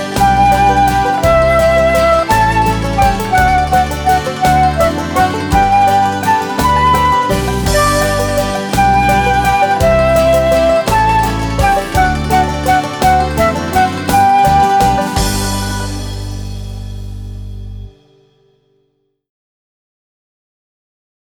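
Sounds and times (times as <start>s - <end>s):
flute: 0.0s - 16.9s.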